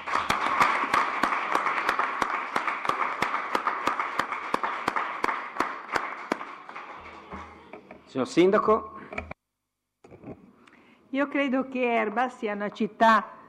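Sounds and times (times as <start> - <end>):
audience applause: 0.0 - 7.9
speech: 8.1 - 8.9, 11.2 - 13.3.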